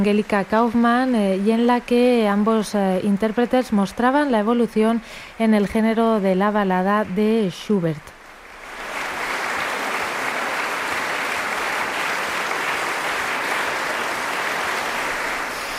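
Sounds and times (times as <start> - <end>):
speech: 0.0 - 8.2
audience applauding after a ballad concert in Schwarzenberg: 8.4 - 15.7.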